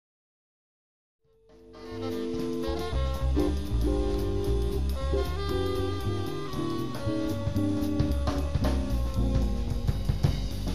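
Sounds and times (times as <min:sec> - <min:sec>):
quartet playing: 0:01.7 - 0:10.6.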